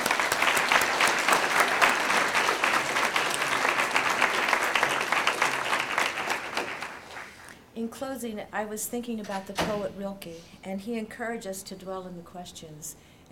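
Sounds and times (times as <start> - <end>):
audience applauding: 0.0 - 7.5
speech: 8.0 - 13.3.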